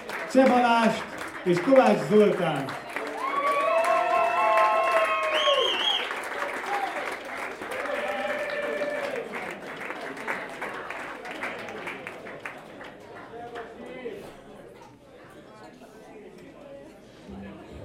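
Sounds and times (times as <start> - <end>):
audience applause: 0.0 - 13.8
speech: 0.3 - 2.8
whoops and cheering: 3.0 - 7.1, 7.7 - 9.2.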